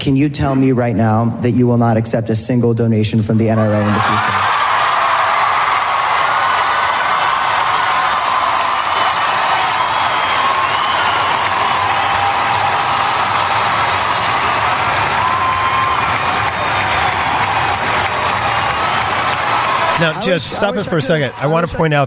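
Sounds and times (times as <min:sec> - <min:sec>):
speech: 0:00.0 - 0:04.5, 0:20.0 - 0:22.0
whoops and shouts: 0:03.6 - 0:20.0
crowd cheering and applauding: 0:03.6 - 0:22.0.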